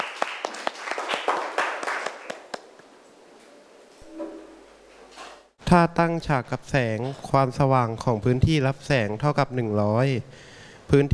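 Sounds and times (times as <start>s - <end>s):
students clapping in a classroom: 0.0s - 2.7s
speech: 5.7s - 11.1s.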